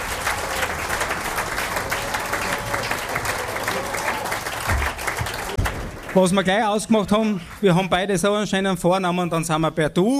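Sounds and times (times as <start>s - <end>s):
audience applause: 0.0s - 8.1s
speech: 6.1s - 10.1s.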